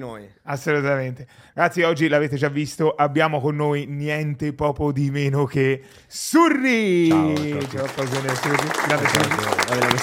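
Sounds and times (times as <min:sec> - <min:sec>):
speech: 0:00.0 - 0:10.0
crowd applause sound effect: 0:07.1 - 0:10.0.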